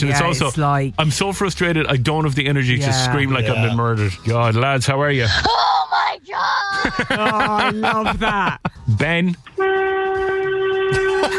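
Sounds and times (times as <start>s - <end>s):
speech: 0.0s - 9.9s
laughter: 6.6s - 8.8s, 10.9s - 11.3s
car horn honking: 9.5s - 11.3s.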